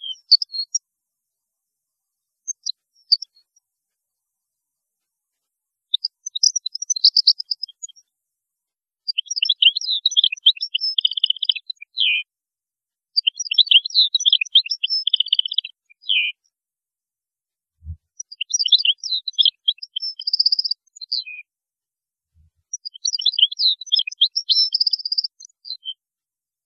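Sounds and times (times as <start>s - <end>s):
European goldfinch song: 0.0s - 0.8s, 2.4s - 3.6s, 5.9s - 8.1s, 9.0s - 12.3s, 13.2s - 16.5s, 17.8s - 21.5s, 22.7s - 26.0s.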